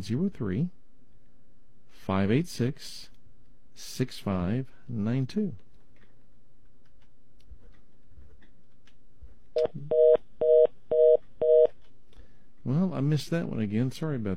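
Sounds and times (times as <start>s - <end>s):
speech: 0.0s - 0.8s, 2.0s - 3.1s, 3.8s - 5.6s, 9.6s - 10.2s, 12.7s - 14.3s
telephone line tones on a radio call-in line: 9.6s - 11.7s.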